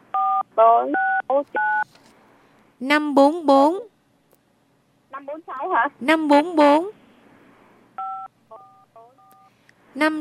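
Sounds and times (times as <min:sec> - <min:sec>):
speech: 0:00.6 - 0:02.0, 0:02.8 - 0:03.9, 0:05.2 - 0:07.0, 0:10.0 - 0:10.2
telephone keypad tones: 0:08.0 - 0:09.5.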